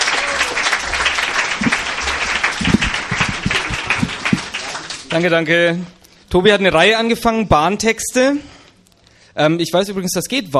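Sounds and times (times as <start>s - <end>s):
audience applause: 0.0s - 5.2s
speech: 5.1s - 8.6s, 9.4s - 10.5s.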